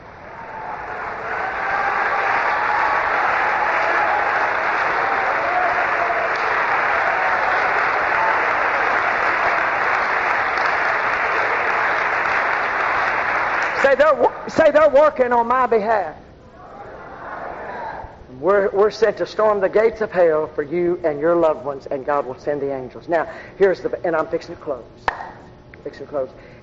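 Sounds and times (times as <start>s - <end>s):
crowd clapping: 0.2s - 14.4s
speech: 13.9s - 16.2s, 18.4s - 25.2s, 25.8s - 26.5s.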